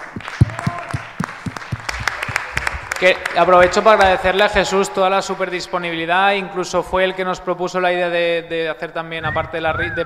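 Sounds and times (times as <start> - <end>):
crowd applauding: 0.0 - 6.2
speech: 3.0 - 10.0.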